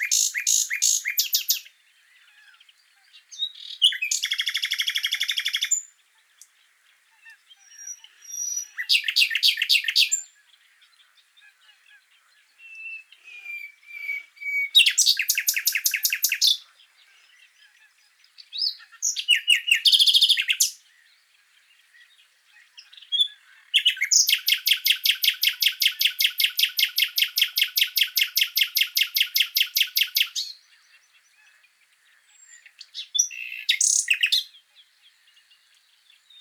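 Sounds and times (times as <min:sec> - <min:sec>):
common nightingale singing: 0:00.0 - 0:36.3.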